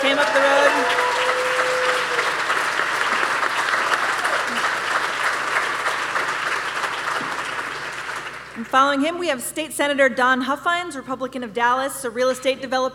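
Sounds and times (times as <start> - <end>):
audience applause: 0.0 - 8.6
speech: 8.7 - 12.9.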